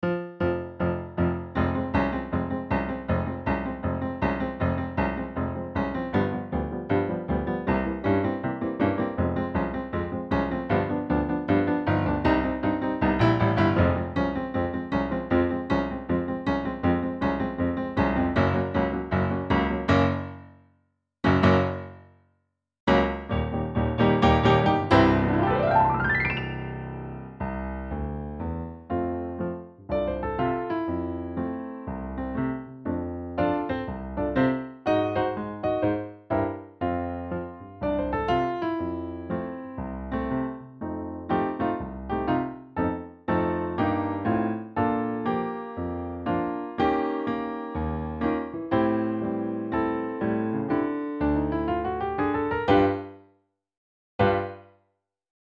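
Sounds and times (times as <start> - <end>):
piano: 0.0 - 20.6, 21.2 - 22.1, 22.9 - 53.2, 54.2 - 54.7.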